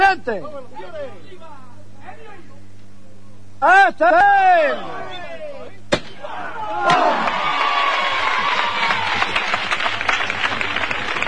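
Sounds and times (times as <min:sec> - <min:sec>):
speech: 0:00.1 - 0:01.0, 0:03.6 - 0:05.2
neighborhood crowd applauding and cheering: 0:06.8 - 0:11.2.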